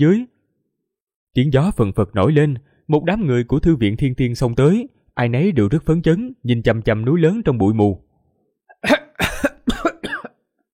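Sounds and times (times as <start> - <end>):
speech: 0.0 - 0.3, 1.3 - 8.0
dry coughing: 8.7 - 10.5.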